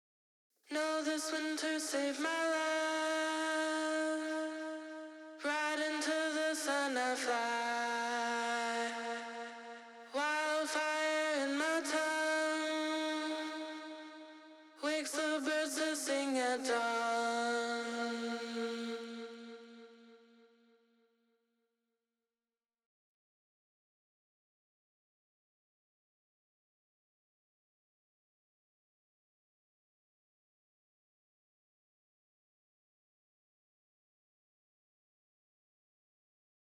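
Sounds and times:
distorted voice with PSP echo in stereo: 0.7 - 9.5, 10.1 - 13.9, 14.8 - 19.6.

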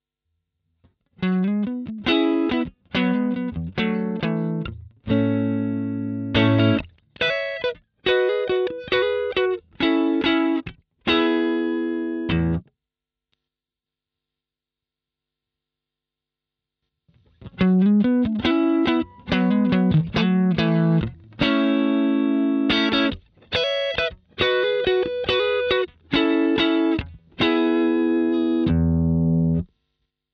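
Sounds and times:
blues music: 1.2 - 12.6, 17.4 - 29.6.

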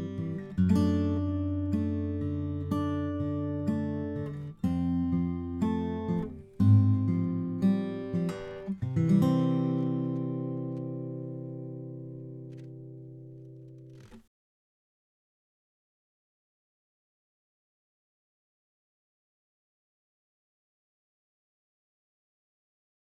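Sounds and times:
Takamine FT340 BS guitar picking: 0.0 - 14.2.

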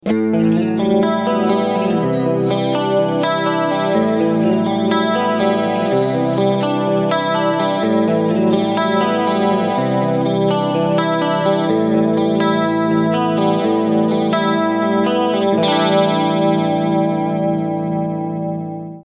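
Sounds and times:
clean electric guitar through Roland JC-120 amplifier: 0.0 - 19.1.

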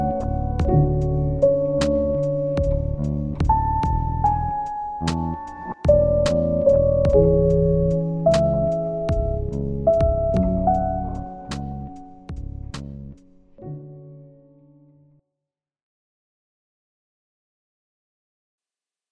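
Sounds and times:
Roland SP 404Mk2 piano slices: 0.0 - 14.9.

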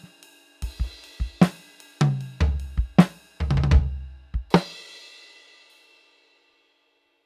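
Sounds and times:
EFNOTE 7 electronic drum kit playing gently: 0.7 - 4.7.

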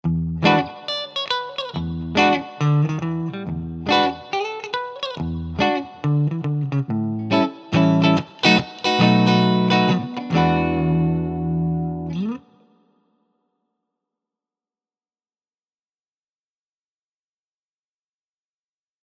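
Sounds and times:
clean electric guitar on bridge and neck pickups: 0.0 - 12.9.

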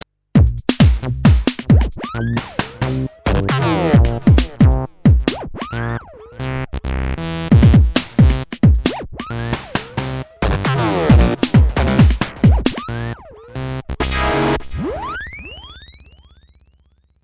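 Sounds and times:
filtered synth drums: 0.0 - 6.2, 7.5 - 13.5.

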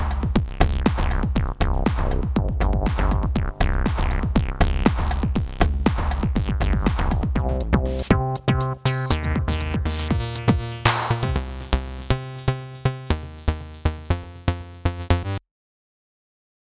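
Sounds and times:
distorted TB acid funk bass line with 909 drums: 0.0 - 15.4.

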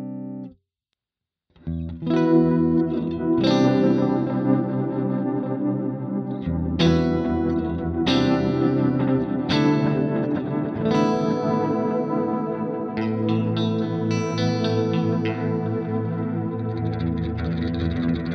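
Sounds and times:
chords in Mode IV: 1.9 - 18.3.

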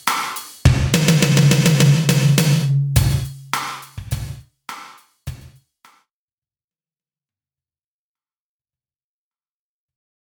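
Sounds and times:
Lexicon gated reverb: 0.9 - 3.8.

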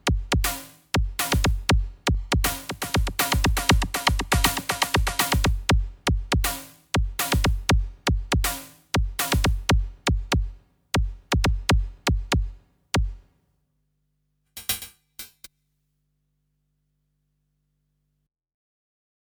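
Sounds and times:
FM synth beat: 0.0 - 13.2.

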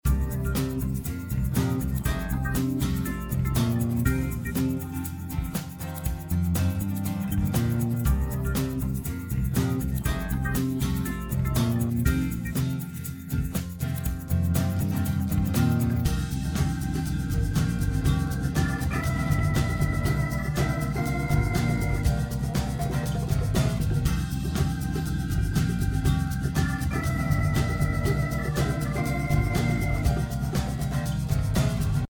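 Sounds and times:
song without vocals: 0.0 - 32.0.

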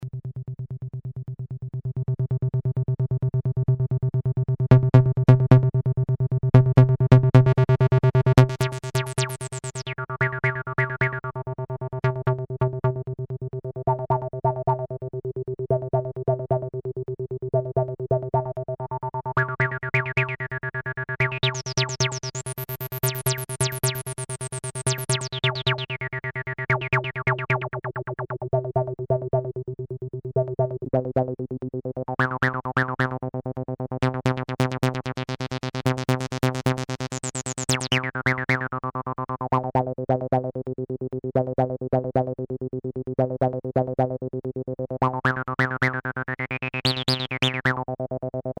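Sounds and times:
RE-303 acid bass synth: 1.8 - 48.5.

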